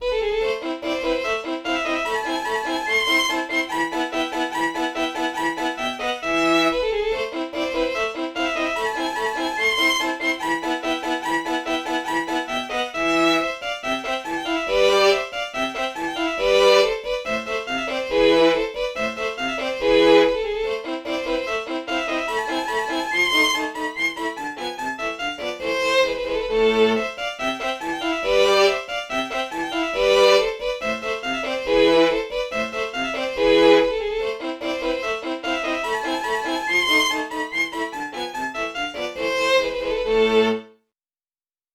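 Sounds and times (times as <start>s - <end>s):
violin: 0.0s - 40.8s.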